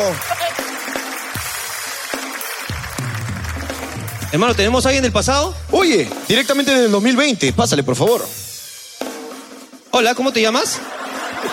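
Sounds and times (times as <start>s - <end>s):
speech: 0.0s - 0.4s, 4.3s - 8.4s, 10.0s - 11.0s
audience applause: 0.0s - 4.6s
laughter: 10.6s - 11.5s.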